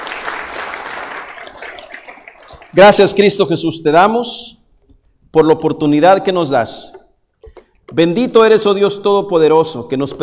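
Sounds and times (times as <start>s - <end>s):
audience applause: 0.0s - 2.8s
speech: 2.7s - 4.6s, 5.3s - 7.0s, 7.9s - 10.2s.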